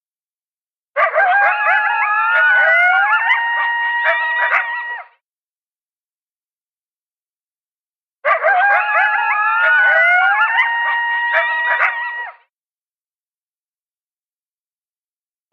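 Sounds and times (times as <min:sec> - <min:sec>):
coyotes yipping and howling: 0:01.0 - 0:05.1, 0:08.2 - 0:12.4.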